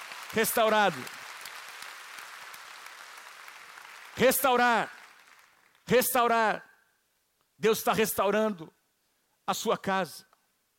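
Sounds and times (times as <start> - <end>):
audience applause: 0.0 - 5.8
speech: 0.3 - 1.2, 4.2 - 5.0, 5.9 - 6.7, 7.6 - 8.8, 9.5 - 10.3.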